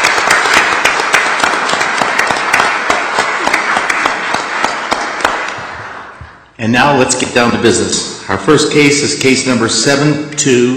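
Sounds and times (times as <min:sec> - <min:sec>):
crowd applauding: 0:00.0 - 0:06.2
speech: 0:06.6 - 0:10.7.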